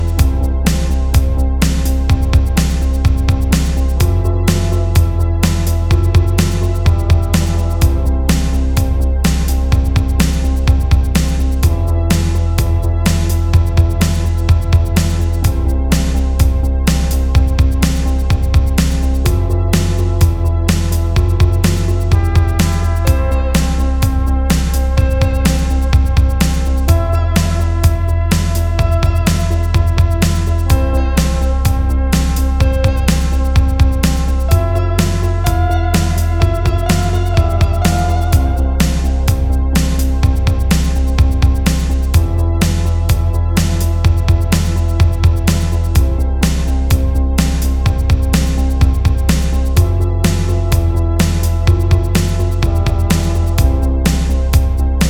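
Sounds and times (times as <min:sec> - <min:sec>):
instrumental music: 0:00.0 - 0:55.0.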